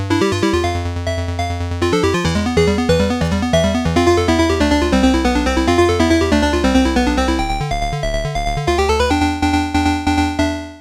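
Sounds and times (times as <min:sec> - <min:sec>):
chiptune blip: 0:00.2 - 0:10.7.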